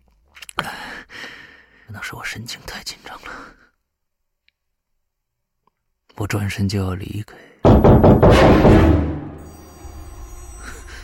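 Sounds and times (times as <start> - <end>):
speech: 1.9 - 3.6, 6.2 - 7.5
knocking on a door: 7.7 - 9.2.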